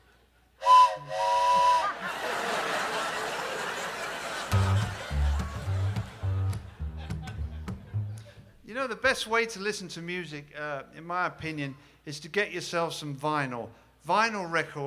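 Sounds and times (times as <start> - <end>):
steam train whistle blowing in harmonic blasts: 0.6 - 2.0
laughter: 1.8 - 8.5
speech: 8.8 - 14.8.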